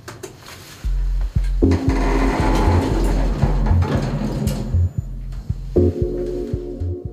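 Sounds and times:
lift running with mechanical hum and clatter: 1.4 - 7.1
elevator doors sliding shut: 1.6 - 5.5.

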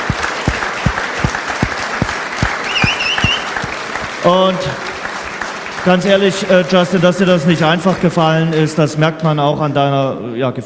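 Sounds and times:
applause: 0.0 - 8.4
speech: 4.2 - 4.9, 5.8 - 10.6.

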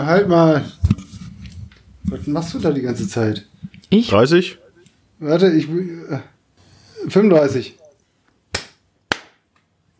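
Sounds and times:
speech: 0.0 - 1.0, 2.0 - 4.6, 5.2 - 6.3, 7.0 - 7.8
hand clap: 8.5 - 9.7.

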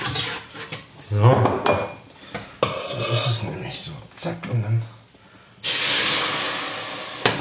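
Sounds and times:
speech: 1.1 - 1.9, 3.0 - 5.0
a litre of sauce sizzling in a hot pan: 5.0 - 7.3.

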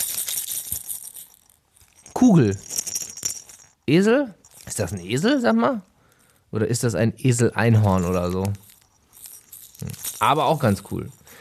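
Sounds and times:
baby rattle toy being shaken: 0.0 - 5.8, 7.7 - 11.4
speech: 2.2 - 2.7, 3.9 - 5.9, 6.5 - 8.6, 10.2 - 11.4.

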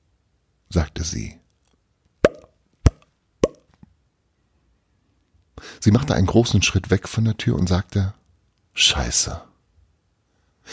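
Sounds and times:
speech: 0.7 - 1.4, 5.8 - 8.2, 8.8 - 9.5
popping sounds: 2.2 - 3.8.

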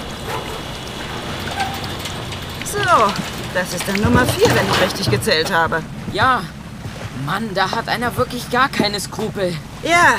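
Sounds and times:
rope winch hauling a barrel aboard: 0.0 - 6.0
speech: 2.7 - 6.6, 7.2 - 10.1.

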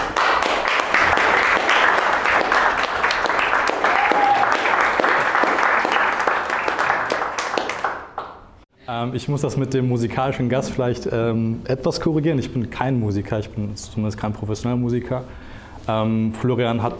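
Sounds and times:
theater audience applause in a hall: 0.0 - 8.4
speech: 9.0 - 16.9.

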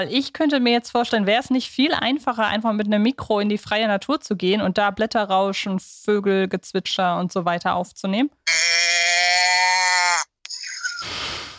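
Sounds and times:
speech: 0.0 - 8.7
calf bleating: 8.5 - 10.3.

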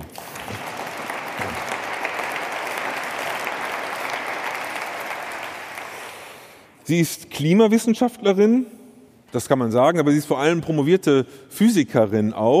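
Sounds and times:
audience applause: 0.0 - 6.7
speech: 6.9 - 12.5.

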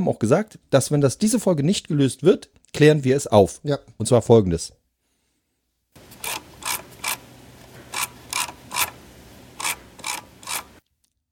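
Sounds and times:
speech: 0.0 - 4.8
computer mouse scroll wheel ratcheting clicks: 6.0 - 10.8.

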